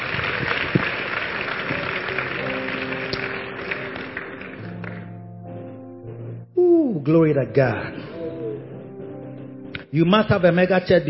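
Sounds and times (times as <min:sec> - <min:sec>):
audience clapping: 0:00.0 - 0:05.3
speech: 0:07.0 - 0:08.1, 0:09.9 - 0:11.0.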